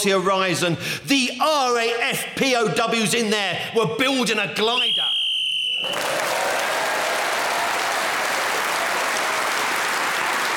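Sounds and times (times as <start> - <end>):
speech: 0.0 - 5.0
whistle blown to end round: 4.7 - 6.1
crowd applause: 5.7 - 10.5.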